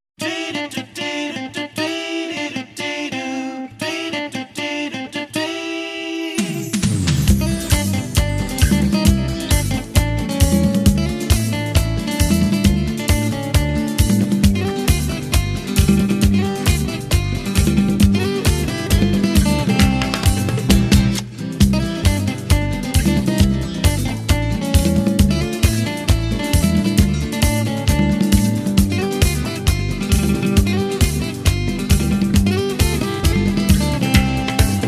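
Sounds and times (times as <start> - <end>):
guitar: 0.2 - 34.8.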